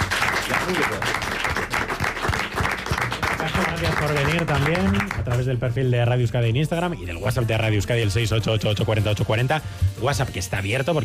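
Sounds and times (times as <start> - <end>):
studio audience applause: 0.0 - 5.4
speech: 3.8 - 11.0.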